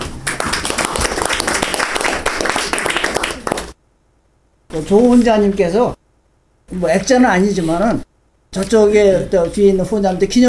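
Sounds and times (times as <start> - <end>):
audience applause: 0.1 - 3.8
speech: 4.8 - 6.0, 6.7 - 10.4.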